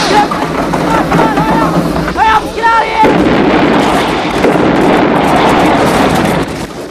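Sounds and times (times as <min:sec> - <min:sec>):
people shouting: 0:00.0 - 0:03.3
bomber plane exploding into fireball: 0:00.0 - 0:06.8
rumbling noise: 0:00.0 - 0:06.8.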